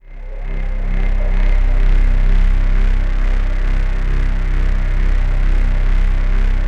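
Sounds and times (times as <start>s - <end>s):
atmospheric synth pad: 0.0s - 6.6s.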